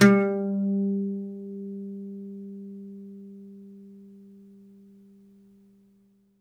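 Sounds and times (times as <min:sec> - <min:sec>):
oud plucked strings: 0:00.0 - 0:02.7.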